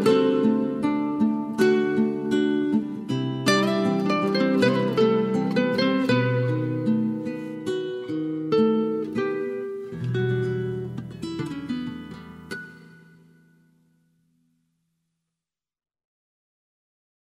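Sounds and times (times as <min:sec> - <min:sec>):
gut-string guitar: 0:00.0 - 0:13.8.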